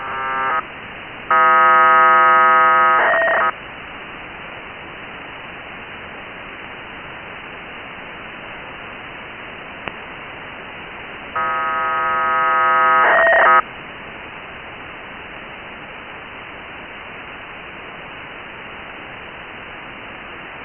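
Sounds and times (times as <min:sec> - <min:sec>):
1k2 BPSK radio data signal on 145880: 0:00.0 - 0:00.6, 0:01.3 - 0:03.6, 0:11.4 - 0:13.6.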